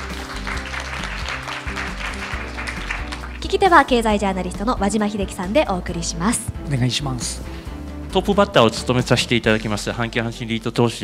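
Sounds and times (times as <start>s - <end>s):
audience applause welcoming speaker: 0.0s - 3.7s
speech: 3.5s - 11.0s.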